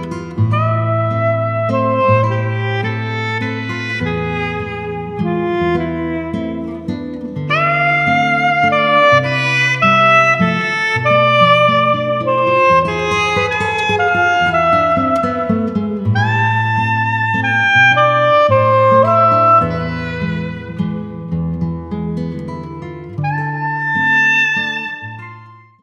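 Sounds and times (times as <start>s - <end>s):
waltz for horn and saxophone: 0.1s - 21.3s, 23.2s - 25.5s.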